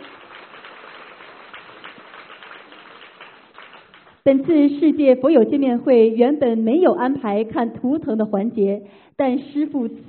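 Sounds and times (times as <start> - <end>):
audience applause: 0.0 - 4.2
speech: 4.2 - 10.0.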